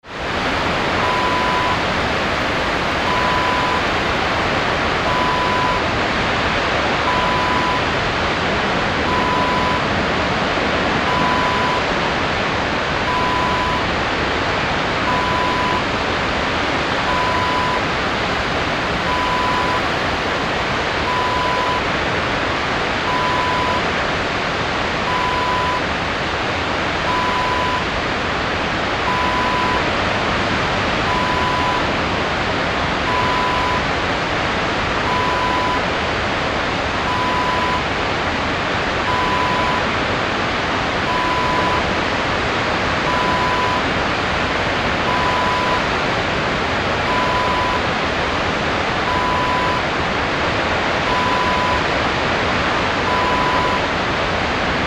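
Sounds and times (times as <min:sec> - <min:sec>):
waterfall: 0:00.0 - 0:54.8.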